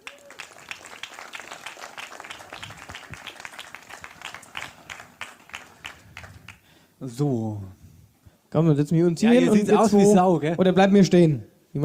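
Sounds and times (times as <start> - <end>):
audience applause: 0.0 - 6.6
speech: 7.0 - 7.8, 8.5 - 11.8.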